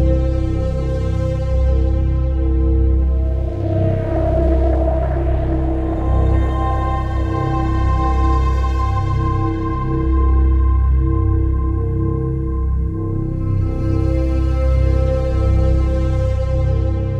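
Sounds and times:
ambient sequence: 0.2s - 17.1s.

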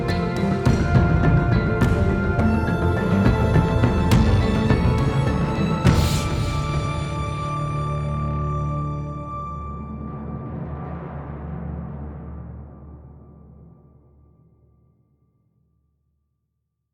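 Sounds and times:
action music loop: 0.0s - 8.6s.

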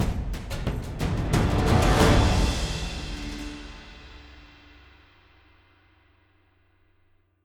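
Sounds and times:
combat intro music: 0.0s - 4.7s.

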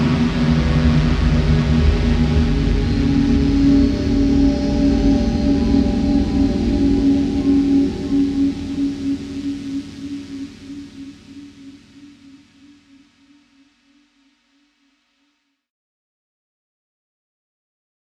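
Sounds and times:
forge ambience: 0.0s - 11.8s.

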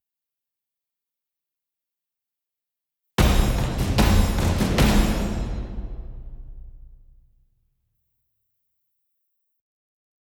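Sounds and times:
combat music ending: 3.2s - 7.2s.

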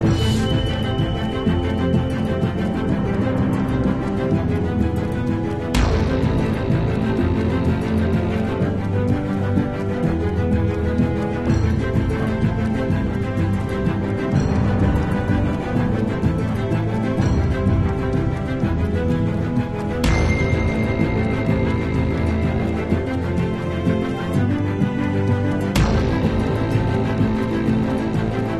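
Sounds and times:
tense music loop: 0.0s - 28.5s.

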